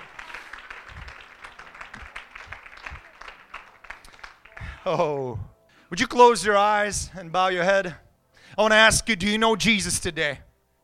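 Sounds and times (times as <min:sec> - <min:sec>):
audience clapping hands: 0:00.0 - 0:05.1
speech: 0:04.8 - 0:08.0, 0:08.6 - 0:10.4.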